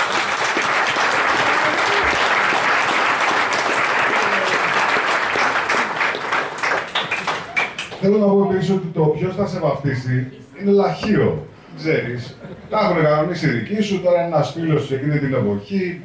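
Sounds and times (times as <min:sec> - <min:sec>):
audience applause: 0:00.0 - 0:08.0
speech: 0:08.0 - 0:16.0.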